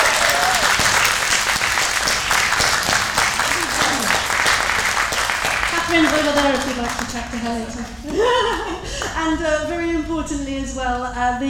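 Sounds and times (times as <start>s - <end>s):
audience applause: 0.0s - 7.7s
laughter: 3.4s - 4.4s, 7.5s - 9.2s
speech: 6.4s - 11.4s.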